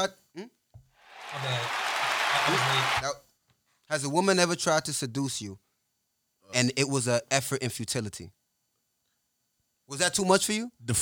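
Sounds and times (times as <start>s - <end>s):
speech: 0.0s - 0.6s, 2.5s - 3.2s, 3.9s - 5.6s, 6.5s - 8.4s, 9.9s - 10.9s
applause: 1.1s - 3.0s.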